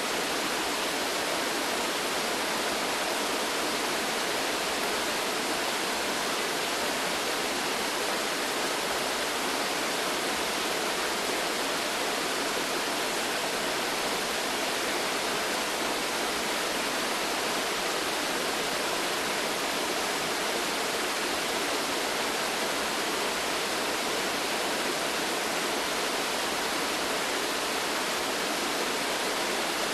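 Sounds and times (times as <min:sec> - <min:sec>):
waterfall in a forest: 0:00.0 - 0:29.9.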